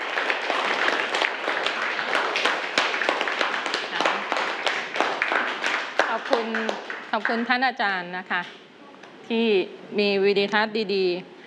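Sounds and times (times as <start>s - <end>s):
children applauding in a classroom: 0.0s - 7.4s
speech: 7.2s - 8.6s, 9.3s - 11.3s.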